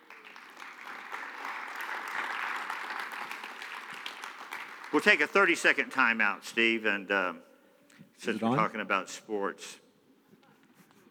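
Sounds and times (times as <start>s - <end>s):
congregation applause at a church service welcoming a guest: 0.0s - 6.8s
speech: 4.9s - 7.5s, 8.2s - 9.8s.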